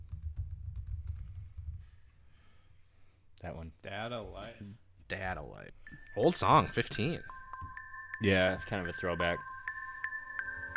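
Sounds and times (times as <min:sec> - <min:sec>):
song title typed on a computer keyboard: 0:00.0 - 0:01.8
speech: 0:03.4 - 0:07.4, 0:08.2 - 0:09.5.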